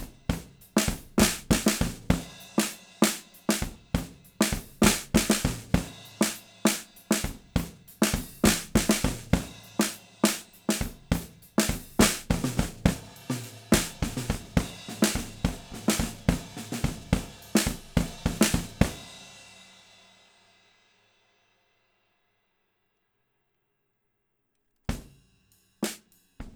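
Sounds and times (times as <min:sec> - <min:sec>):
inverted drums: 0:00.0 - 0:19.0.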